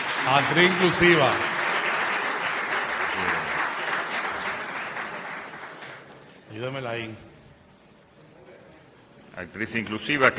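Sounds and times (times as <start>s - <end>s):
audience applause: 0.0s - 6.2s
speech: 0.2s - 1.5s, 6.6s - 7.3s, 9.4s - 10.3s.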